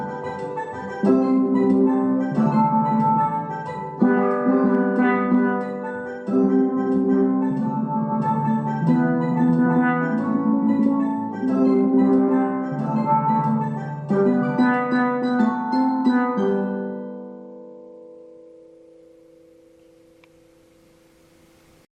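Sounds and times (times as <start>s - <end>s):
steel band playing: 0.0s - 16.7s
guitar: 0.0s - 17.3s.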